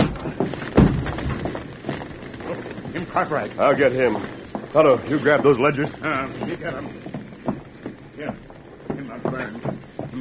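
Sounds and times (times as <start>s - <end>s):
locked door being forced open: 0.0s - 2.2s
speech: 3.0s - 7.1s, 9.3s - 10.2s.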